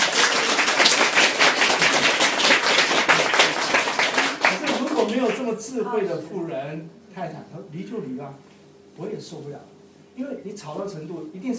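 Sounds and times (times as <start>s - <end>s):
audience clapping hands: 0.0s - 5.6s
speech: 5.6s - 11.5s.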